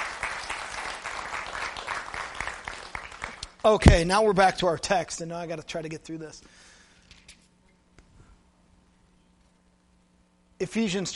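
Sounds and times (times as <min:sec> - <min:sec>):
crowd clapping: 0:00.0 - 0:03.8
speech: 0:03.6 - 0:06.6, 0:10.6 - 0:11.1.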